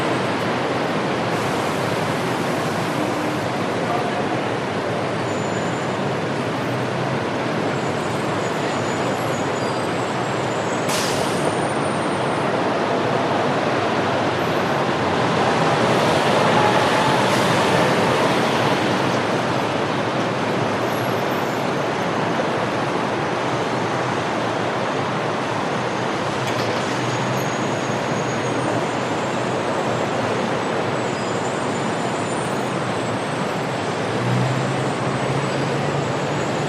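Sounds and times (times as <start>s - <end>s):
traffic in LAX airport terminal parking garage in the USA: 0.0s - 36.6s.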